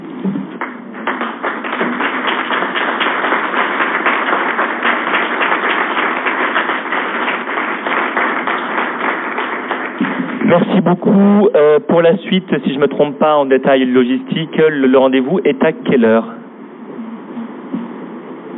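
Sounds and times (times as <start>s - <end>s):
applause: 0.5s - 11.0s
speech: 10.5s - 16.4s.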